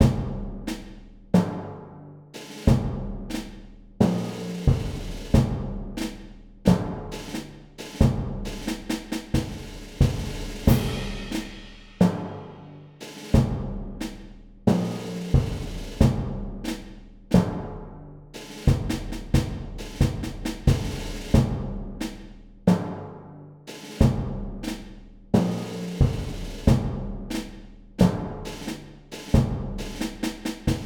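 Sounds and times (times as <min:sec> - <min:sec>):
war drums: 0:00.0 - 0:01.8, 0:02.4 - 0:30.8.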